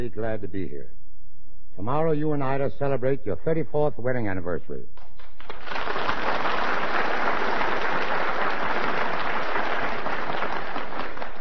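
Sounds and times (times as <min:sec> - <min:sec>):
speech: 0:00.0 - 0:01.0, 0:01.8 - 0:05.0
studio audience applause: 0:05.0 - 0:11.3.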